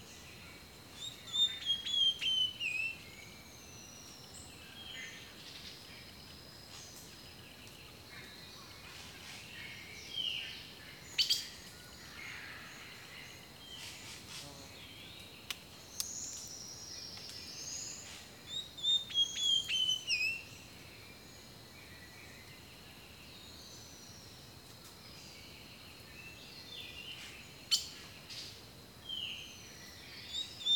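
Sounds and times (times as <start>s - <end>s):
quiet hiss: 0.0s - 30.7s
bird whistled song: 1.0s - 3.0s, 17.2s - 20.5s, 30.2s - 30.7s.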